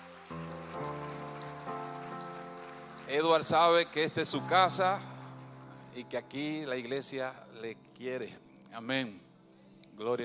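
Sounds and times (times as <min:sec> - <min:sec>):
audience applauding: 0:00.0 - 0:05.4
speech: 0:03.1 - 0:05.1, 0:06.0 - 0:09.2, 0:10.0 - 0:10.2.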